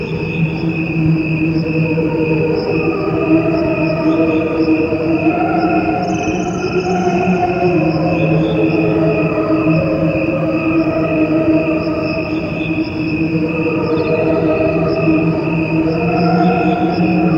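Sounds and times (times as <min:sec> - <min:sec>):
crickets chorus: 0:00.0 - 0:17.3.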